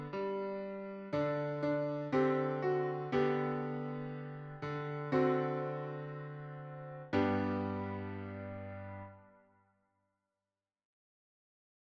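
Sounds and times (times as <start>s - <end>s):
tin piano: 0.0s - 9.4s.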